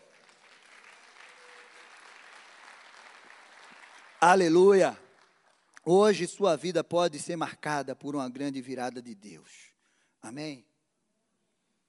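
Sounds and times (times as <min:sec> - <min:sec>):
audience applauding: 0:00.0 - 0:05.9
speech: 0:04.2 - 0:05.0, 0:05.8 - 0:10.7.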